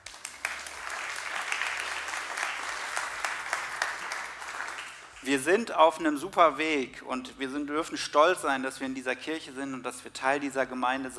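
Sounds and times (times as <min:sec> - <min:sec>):
audience applauding: 0:00.0 - 0:05.3
speech: 0:05.2 - 0:11.1.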